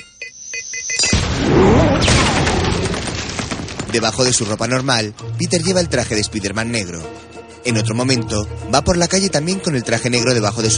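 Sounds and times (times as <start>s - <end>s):
beeping tones from a thrown spherical bomb: 0.0s - 1.2s
explosion of a thrown spherical bomb in a 2007 superhero action film: 1.0s - 4.4s
sustained rumbling, crackling debris after the explosion: 1.1s - 6.2s
speech: 3.9s - 10.7s.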